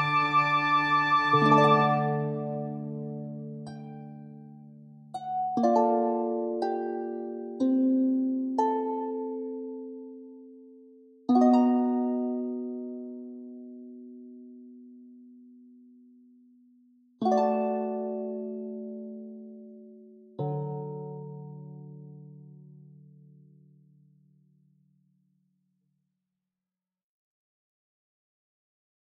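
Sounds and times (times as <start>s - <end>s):
harp: 0.0s - 16.0s, 17.2s - 23.5s.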